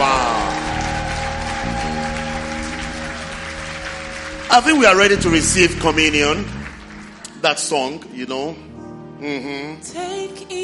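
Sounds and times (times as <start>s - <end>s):
audience clapping: 0.0s - 8.1s
sustained keyboard or organ notes: 4.3s - 7.8s
speech: 4.5s - 6.6s, 7.4s - 10.6s.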